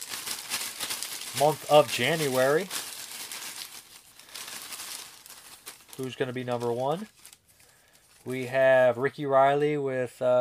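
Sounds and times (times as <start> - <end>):
paper slips crinkling while names are drawn for a Patreon giveaway: 0.0 - 8.5
speech: 1.4 - 2.8, 6.0 - 7.2, 8.2 - 10.3.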